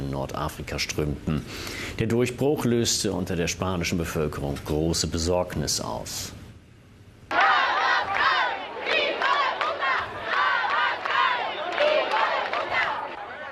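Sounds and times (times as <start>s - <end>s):
speech: 0.1s - 6.4s
protest crowd chanting slogans: 7.3s - 13.5s.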